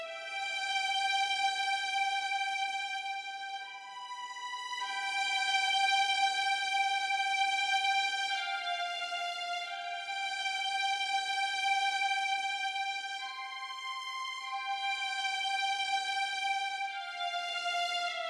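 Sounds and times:
violins: 0:00.0 - 0:18.2.

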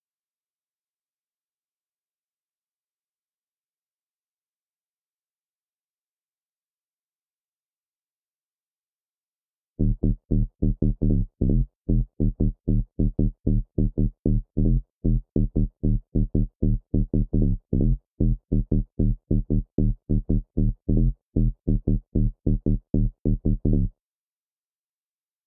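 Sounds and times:
bassline: 0:09.8 - 0:23.9.

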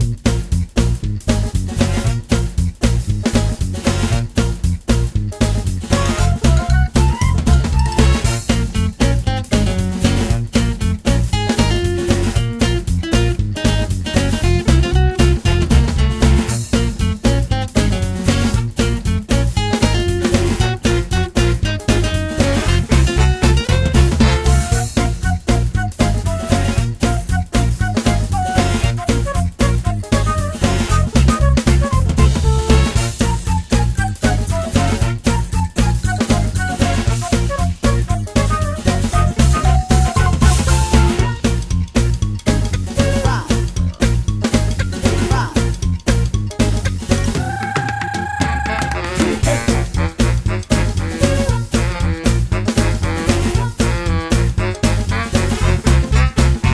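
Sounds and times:
jungle chase music: 0:00.0 - 0:56.7.

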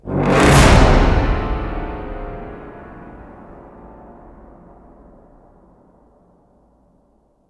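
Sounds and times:
musical stinger: 0:00.0 - 0:05.6.

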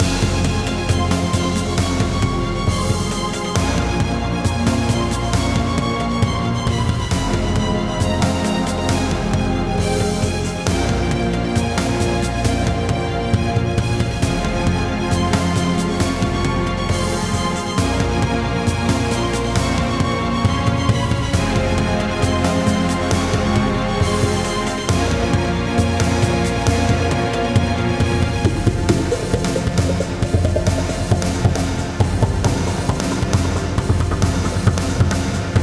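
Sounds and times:
dark ambient music: 0:00.0 - 0:35.6.

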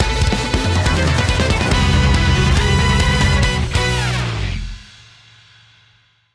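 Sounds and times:
battle victory music: 0:00.0 - 0:04.9.

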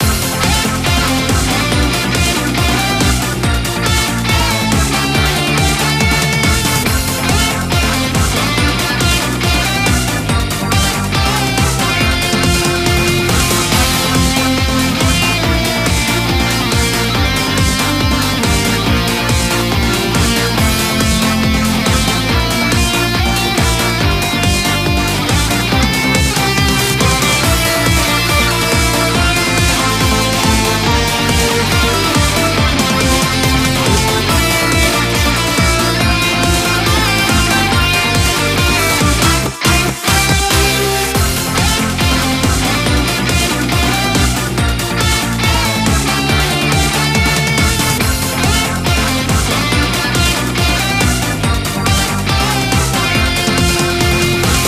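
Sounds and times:
game music general event: 0:00.0 - 0:54.6.

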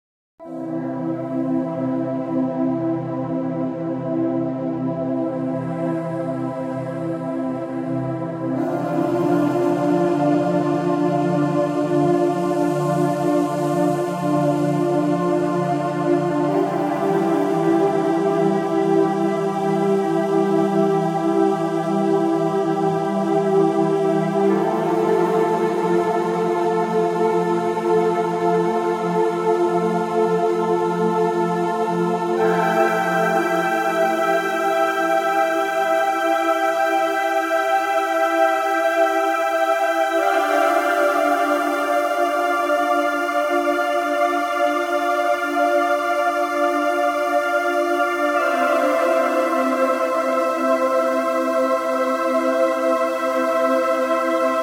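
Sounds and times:
space colony ambient music: 0:00.4 - 0:54.6.

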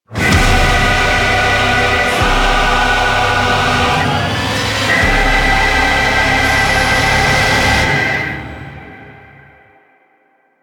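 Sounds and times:
heavy transition: 0:00.1 - 0:09.8.

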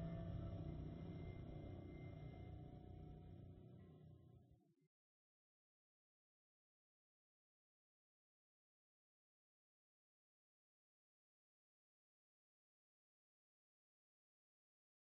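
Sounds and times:
audio drone: 0:00.0 - 0:04.2.

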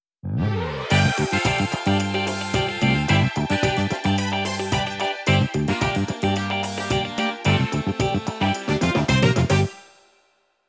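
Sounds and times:
congratulations fanfare: 0:00.8 - 0:10.0.

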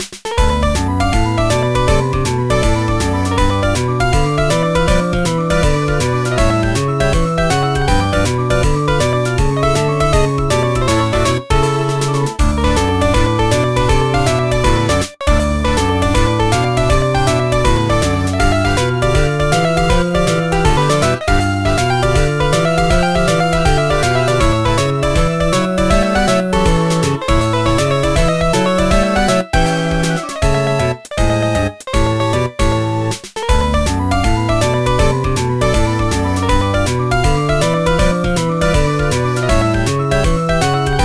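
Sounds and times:
simple folk music: 0:00.0 - 0:41.0.

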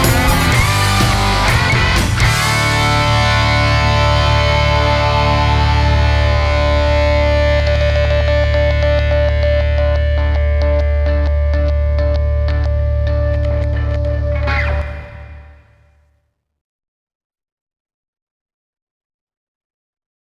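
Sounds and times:
rock music: 0:00.0 - 0:15.8.

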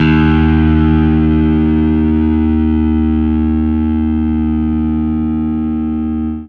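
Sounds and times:
fuzz guitar D sharp note: 0:00.0 - 0:06.4.

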